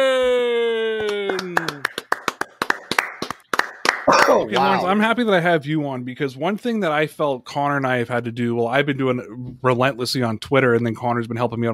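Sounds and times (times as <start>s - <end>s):
hands clapping: 0.9s - 4.9s
speech: 4.4s - 11.7s.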